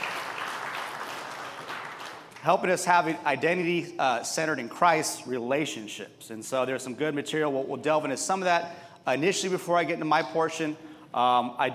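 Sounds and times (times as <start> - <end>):
audience clapping: 0.0 - 2.8
speech: 2.4 - 11.7.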